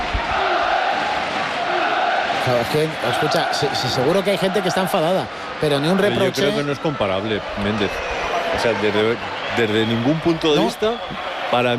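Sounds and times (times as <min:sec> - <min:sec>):
football crowd at a stadium chanting for their team: 0:00.0 - 0:03.6
speech: 0:02.5 - 0:11.7.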